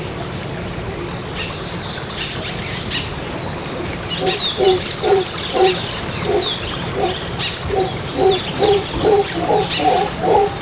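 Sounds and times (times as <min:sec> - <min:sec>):
jungle ambience: 0:00.0 - 0:10.6.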